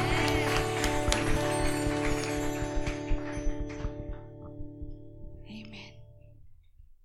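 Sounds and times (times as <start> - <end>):
crowd clapping loudly: 0.0 - 4.4
steady sustained musical tone: 0.0 - 5.8.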